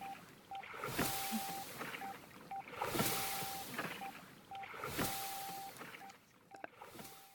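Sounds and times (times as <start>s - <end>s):
rhythmic whooshing water: 0.0s - 6.1s
electronic rowing metronome beeps: 0.0s - 7.3s.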